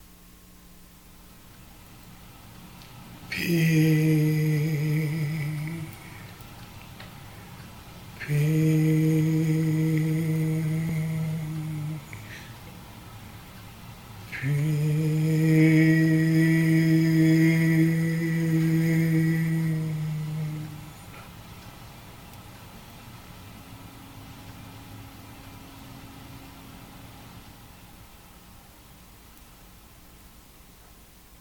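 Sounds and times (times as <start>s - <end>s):
peace chant: 3.3s - 6.2s, 8.2s - 12.5s, 14.3s - 21.1s.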